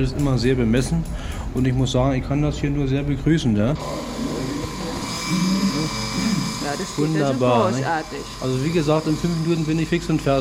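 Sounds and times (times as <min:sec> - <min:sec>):
speech: 0:00.0 - 0:04.5, 0:06.7 - 0:10.4
man shaving with electric razor: 0:03.8 - 0:10.4.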